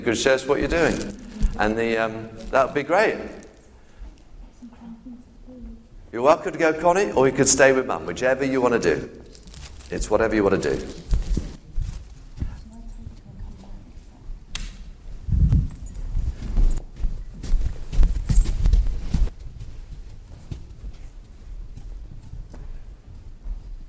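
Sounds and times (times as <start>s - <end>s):
speech: 0.0s - 3.4s, 6.1s - 9.2s, 9.9s - 11.0s
children's footsteps thudding up a flight of stairs: 15.3s - 23.8s.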